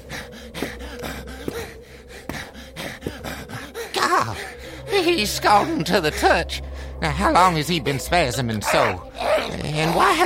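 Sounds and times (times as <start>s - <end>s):
ragged labored breathing of a sick man: 0.0s - 7.0s
speech: 4.2s - 10.2s.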